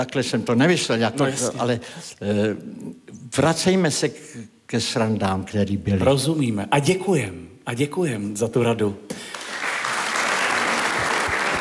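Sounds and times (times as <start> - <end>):
speech: 0.0 - 9.3
audience applause with a man clapping: 9.3 - 11.5.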